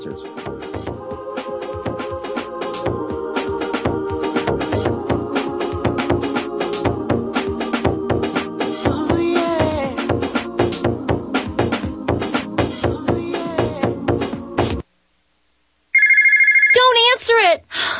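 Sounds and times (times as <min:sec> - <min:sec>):
busy music: 0:00.0 - 0:14.8
warbling electronic telephone ring for a debt-collection call: 0:16.0 - 0:17.0.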